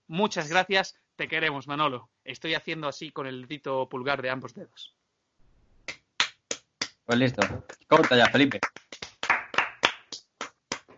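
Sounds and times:
speech: 0.1 - 5.0, 7.1 - 8.8
person clapping hands: 5.9 - 10.9.

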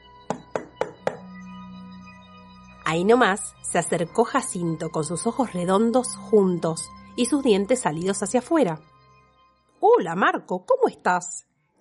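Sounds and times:
knocking on a wooden door: 0.3 - 1.3
speech: 2.9 - 8.9, 9.9 - 11.7.

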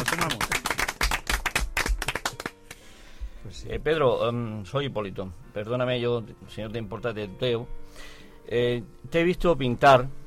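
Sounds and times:
applause: 0.0 - 2.9
speech: 3.7 - 10.2.

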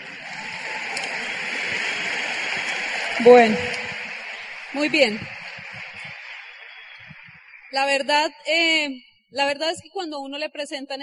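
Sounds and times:
audience applause: 0.0 - 7.6
speech: 3.2 - 3.8, 4.7 - 5.4, 7.7 - 11.0.

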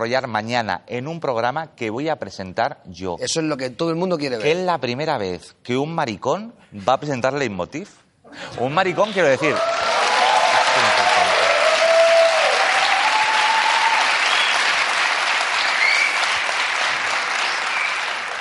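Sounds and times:
speech: 0.0 - 9.9
audience applause: 8.9 - 18.3.

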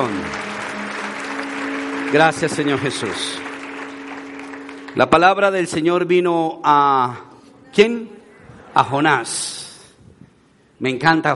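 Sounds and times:
audience applause: 0.0 - 5.5
speech: 2.1 - 3.4, 5.0 - 8.2, 8.8 - 9.6, 10.8 - 11.3.

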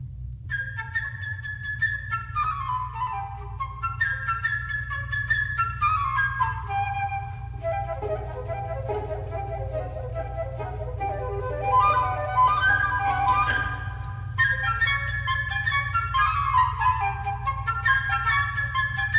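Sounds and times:
steady low hum: 0.0 - 19.1
transverse flute playing a chirping melody: 0.5 - 19.1.

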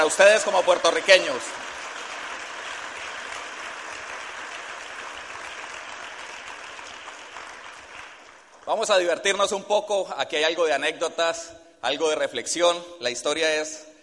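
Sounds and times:
speech: 0.0 - 1.8, 8.7 - 13.9
audience applause: 0.0 - 8.8.

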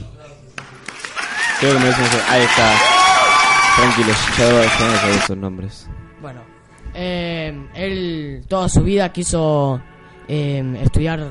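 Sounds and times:
applause: 0.6 - 5.3
speech: 1.6 - 2.9, 3.8 - 11.2.

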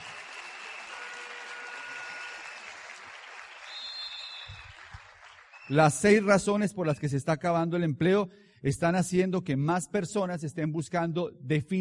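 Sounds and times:
audience applause: 0.0 - 5.8
speech: 5.7 - 11.7.

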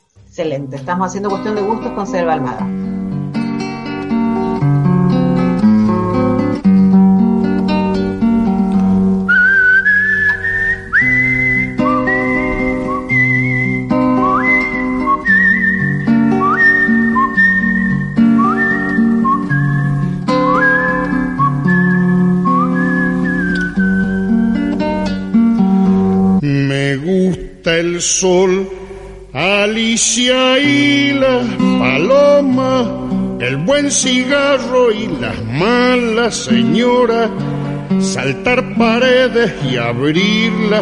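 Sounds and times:
steady acoustic guitar accompaniment: 0.0 - 40.8
speech: 0.4 - 3.0, 28.0 - 28.6, 30.0 - 40.8
whistled tune opening a folk song: 9.2 - 25.2.

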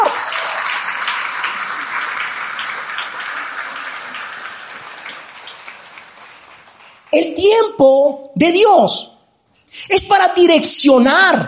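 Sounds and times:
crowd applause: 0.0 - 7.2
speech: 7.2 - 9.1, 9.8 - 11.4.

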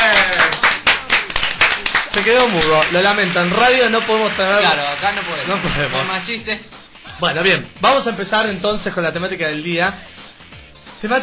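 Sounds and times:
clapping applause: 0.0 - 6.3
speech: 2.2 - 10.1, 11.0 - 11.2.

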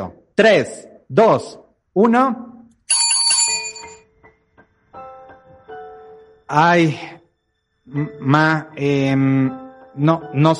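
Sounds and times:
speech: 0.0 - 2.5, 6.5 - 7.2, 7.9 - 10.5
small hand bell ringing: 2.9 - 4.0.

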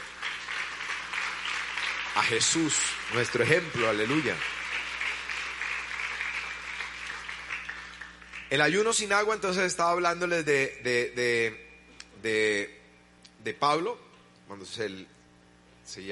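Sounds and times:
audience applauding: 0.0 - 9.2
speech: 2.2 - 4.6, 8.5 - 11.6, 12.2 - 12.8, 13.4 - 15.2, 15.9 - 16.1.

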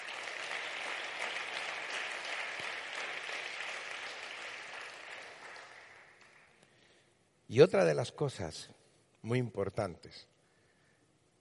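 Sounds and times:
audience applause: 0.0 - 6.6
speech: 7.5 - 10.3.

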